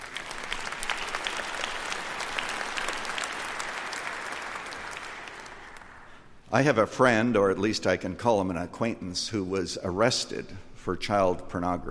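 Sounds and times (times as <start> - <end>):
crowd applause: 0.0 - 6.2
speech: 6.5 - 11.8.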